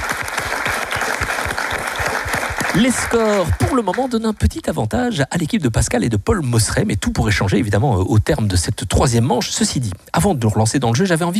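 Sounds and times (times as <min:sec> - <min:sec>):
audience applause at the Ciney town hall: 0:00.0 - 0:04.6
speech: 0:02.8 - 0:11.3.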